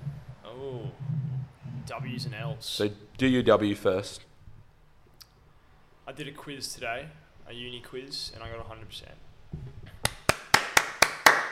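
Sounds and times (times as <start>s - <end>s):
speech: 1.9s - 4.3s, 6.1s - 9.7s
hand clapping: 10.0s - 11.5s.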